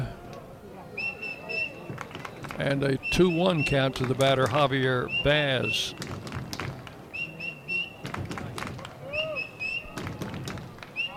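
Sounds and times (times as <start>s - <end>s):
bird calling: 1.0s - 1.9s, 5.0s - 6.1s, 7.1s - 8.1s, 9.0s - 10.2s, 10.9s - 11.1s
speech: 2.6s - 6.2s.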